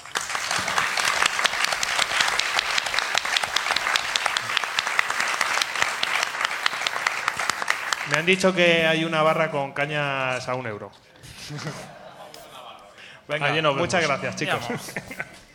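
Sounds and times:
audience applause: 0.0 - 8.6
speech: 8.1 - 12.0, 13.3 - 15.3
laughter: 11.1 - 15.5.

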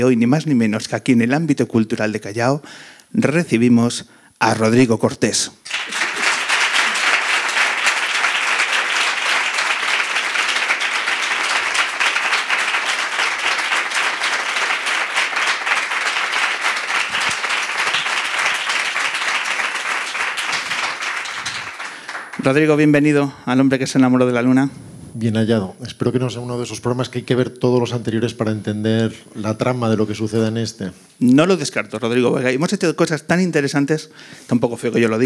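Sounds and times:
speech: 0.0 - 6.0, 22.5 - 35.2
audience applause: 5.7 - 23.0.

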